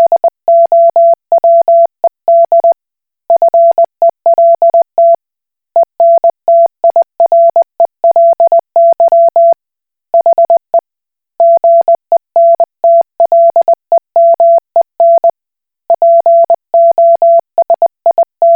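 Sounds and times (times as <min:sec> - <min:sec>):
Koch Morse code beeps: 0:00.0 - 0:02.8, 0:03.4 - 0:05.2, 0:06.0 - 0:09.6, 0:11.4 - 0:15.3, 0:15.9 - 0:18.5.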